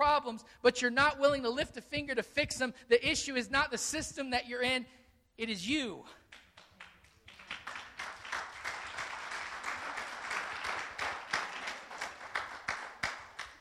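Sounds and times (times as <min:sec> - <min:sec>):
speech: 0:00.0 - 0:06.2
a few people clapping: 0:06.2 - 0:13.6.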